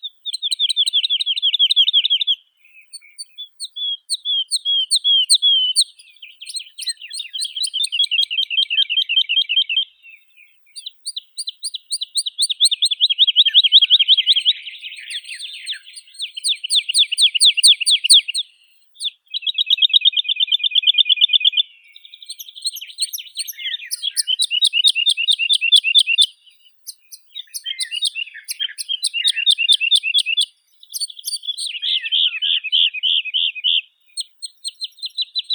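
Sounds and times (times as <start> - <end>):
woodlark Lullula arborea singing: 0.0 - 20.9, 21.8 - 35.5.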